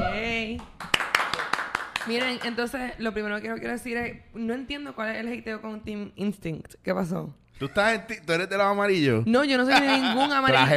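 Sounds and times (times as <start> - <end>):
applause: 0.6 - 2.6
speech: 2.1 - 10.7
laughter: 9.7 - 10.7.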